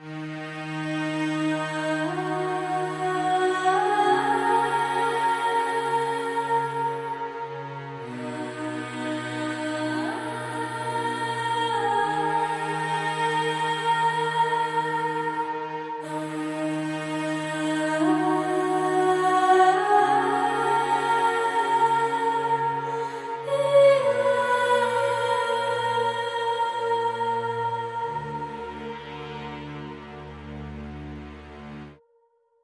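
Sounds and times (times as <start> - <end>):
choir: 0.0 - 32.0
strings: 0.0 - 32.0.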